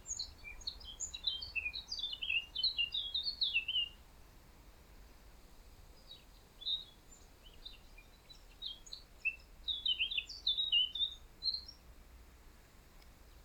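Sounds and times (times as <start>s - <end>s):
soft background noise: 0.0s - 13.4s
Eurasian blackcap twittering: 0.1s - 4.0s, 6.1s - 11.8s.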